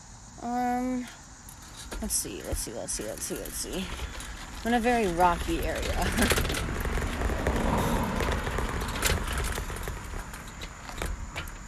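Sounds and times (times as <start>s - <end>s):
speech: 0.4s - 1.2s, 2.0s - 6.7s
car passing by on road: 5.1s - 11.0s.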